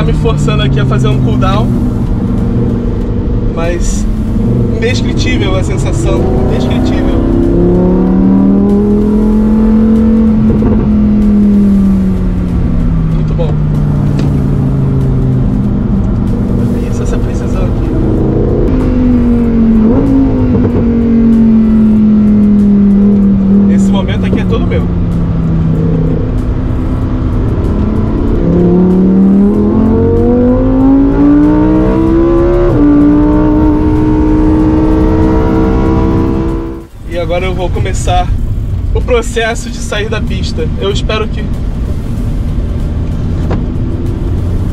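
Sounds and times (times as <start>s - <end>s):
STO sports car engine on a race track: 0.0s - 44.7s
speech: 0.2s - 2.0s, 3.6s - 8.1s, 37.8s - 38.4s, 39.1s - 41.6s.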